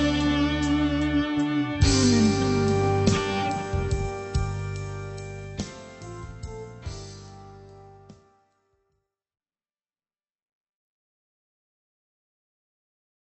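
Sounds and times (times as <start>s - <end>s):
overdrive effect: 0.0s - 8.1s.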